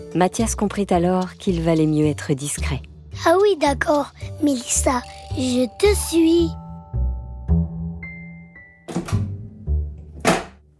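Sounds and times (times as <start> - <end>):
speech: 0.0 - 6.6
bedroom door being shut: 8.9 - 9.4, 10.0 - 10.6.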